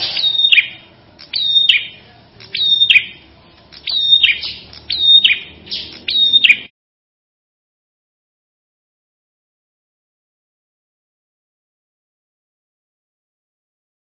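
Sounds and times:
Ashy tailorbird singing: 0.0s - 6.7s.

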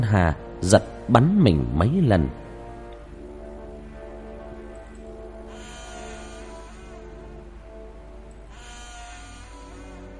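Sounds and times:
speech: 0.1s - 2.4s
door creaking in the wind: 5.5s - 7.1s, 8.5s - 10.1s.

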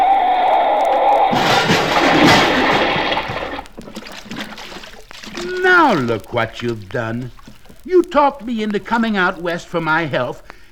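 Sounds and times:
water trickling and dripping: 0.0s - 10.7s
car crashing into a water trough with splashing water: 0.9s - 6.2s
speech: 5.7s - 10.7s.

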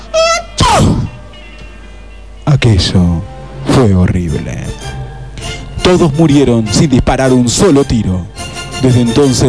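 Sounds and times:
voice imitating a huge sneeze: 0.3s - 1.2s
speech: 2.7s - 4.8s, 5.9s - 9.4s.

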